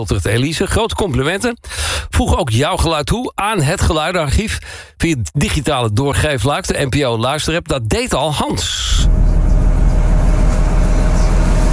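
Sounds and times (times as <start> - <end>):
speech: 0.0 - 9.3
ferry engine idling: 8.9 - 11.7.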